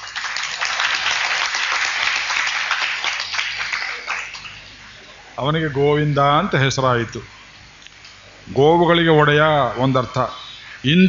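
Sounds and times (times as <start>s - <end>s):
audience applause at a spoken discourse: 0.0s - 4.8s
speech: 5.4s - 7.3s, 8.4s - 11.0s.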